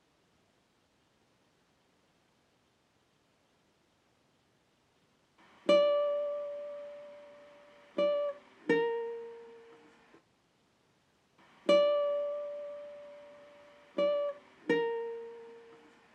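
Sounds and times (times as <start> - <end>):
guitar loop in G minor at 80 BPM: 5.4 - 10.2, 11.4 - 16.1.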